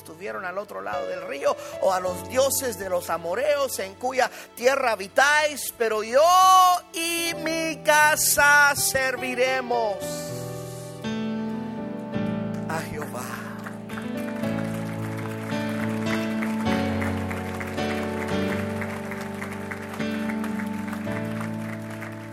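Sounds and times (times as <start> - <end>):
sustained keyboard or organ chords: 0.0 - 22.3
speech: 0.2 - 10.4
audience applause: 12.7 - 22.3.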